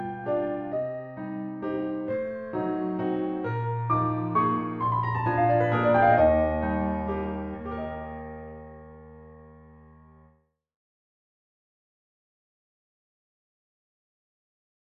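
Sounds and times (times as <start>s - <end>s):
piano: 0.0s - 10.4s.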